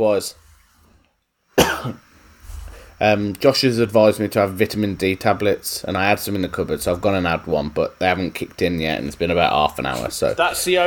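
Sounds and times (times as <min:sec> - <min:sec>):
speech: 0:00.0 - 0:00.4, 0:01.8 - 0:02.1, 0:03.0 - 0:10.8
person coughing: 0:01.6 - 0:02.0.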